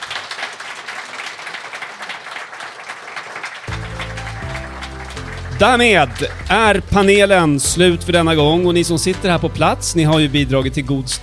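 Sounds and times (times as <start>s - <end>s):
audience applause: 0.0s - 7.6s
speech: 5.6s - 11.2s.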